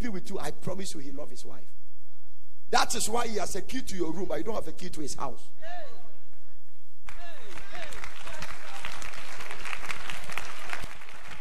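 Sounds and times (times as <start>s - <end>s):
speech: 0.0s - 1.8s, 2.7s - 6.0s
audience clapping: 7.0s - 11.4s.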